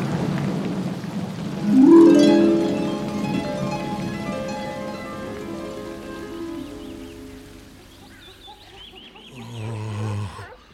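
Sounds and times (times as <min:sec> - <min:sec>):
rain: 0:00.0 - 0:10.0.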